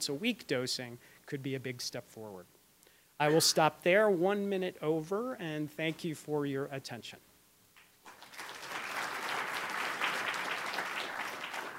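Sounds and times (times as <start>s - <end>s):
speech: 0.0s - 2.6s, 3.2s - 7.3s
audience applause: 8.0s - 11.7s.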